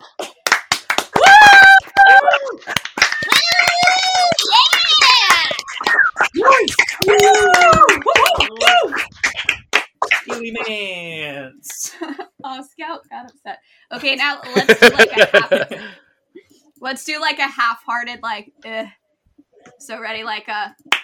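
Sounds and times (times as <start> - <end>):
small group clapping: 0.0 - 10.8, 20.9 - 21.0
whoops and cheering: 1.1 - 9.0
speech: 14.1 - 15.9, 16.9 - 19.0, 19.8 - 21.0
laughter: 14.4 - 15.9.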